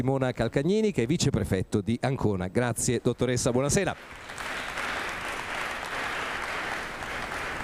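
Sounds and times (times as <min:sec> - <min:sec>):
speech: 0:00.0 - 0:04.6
audience applause: 0:04.0 - 0:07.6.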